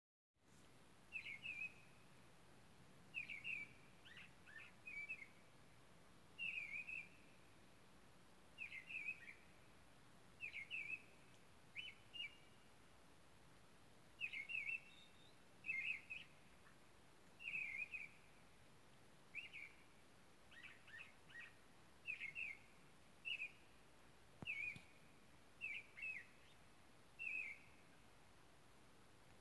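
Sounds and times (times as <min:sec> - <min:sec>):
bird: 0:01.1 - 0:02.0, 0:03.1 - 0:05.5, 0:06.4 - 0:07.4, 0:08.6 - 0:09.6, 0:10.4 - 0:12.7, 0:14.2 - 0:18.4, 0:19.3 - 0:23.8, 0:24.4 - 0:28.1.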